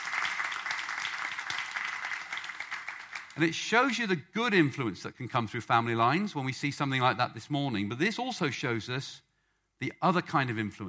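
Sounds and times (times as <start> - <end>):
audience applauding: 0.0 - 3.5
speech: 3.4 - 9.2, 9.8 - 10.8.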